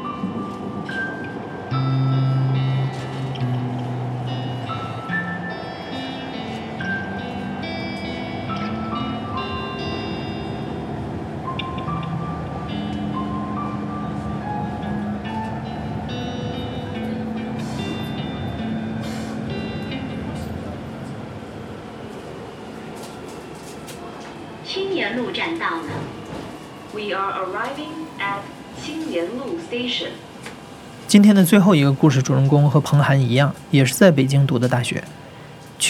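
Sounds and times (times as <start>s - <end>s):
subway train wind and track noise: 0.0s - 35.8s
humming tones: 1.2s - 21.6s
speech: 25.0s - 26.0s, 27.0s - 30.2s, 31.1s - 35.2s.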